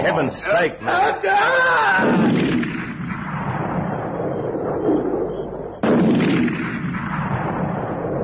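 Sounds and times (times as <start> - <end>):
speech: 0.0 - 2.4
gunshots blasting through a tent: 2.0 - 4.8, 5.8 - 8.2.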